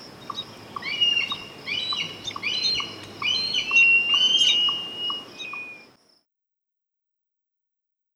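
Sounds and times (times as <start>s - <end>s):
red-tailed hawk calling: 0.3s - 5.8s.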